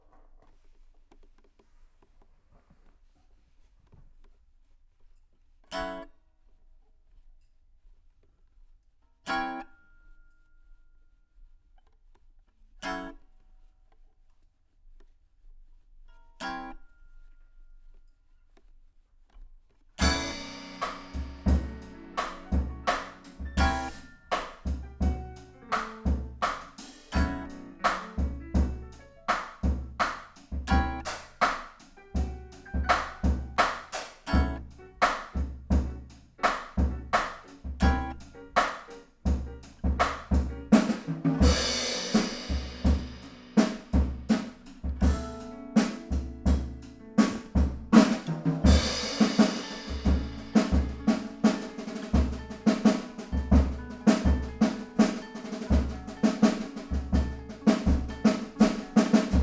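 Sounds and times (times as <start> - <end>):
guitar: 5.7 - 6.1, 9.2 - 9.8, 12.8 - 13.2, 16.4 - 16.9, 20.0 - 59.4.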